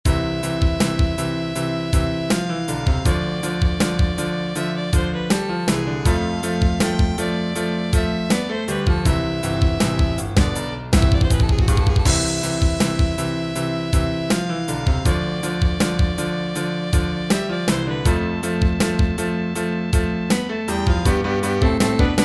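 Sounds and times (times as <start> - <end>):
drums: 0.1 - 22.2.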